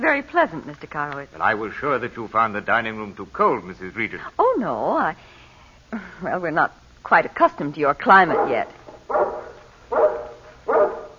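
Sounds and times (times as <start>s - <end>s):
speech: 0.1s - 10.0s
guard dog barking: 8.3s - 11.1s.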